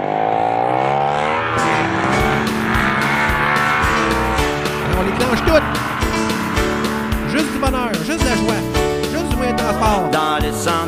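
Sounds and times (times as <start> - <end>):
snowmobile engine revving: 0.0 - 10.8.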